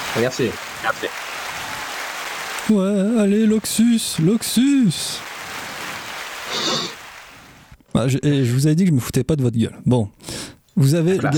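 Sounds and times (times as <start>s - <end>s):
crowd clapping: 0.0s - 7.8s
speech: 0.1s - 1.3s, 2.7s - 5.3s, 8.0s - 10.2s, 10.8s - 11.3s.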